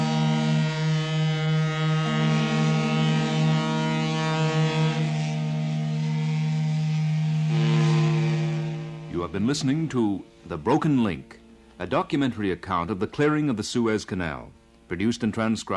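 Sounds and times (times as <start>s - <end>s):
whistles of passing ships in harbor: 0.0s - 11.4s
speech: 9.3s - 15.7s.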